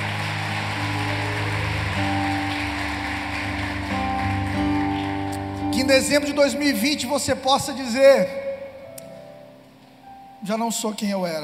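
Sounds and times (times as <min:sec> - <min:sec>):
audience applauding: 0:00.0 - 0:07.3
speech: 0:05.9 - 0:08.5, 0:10.4 - 0:11.4.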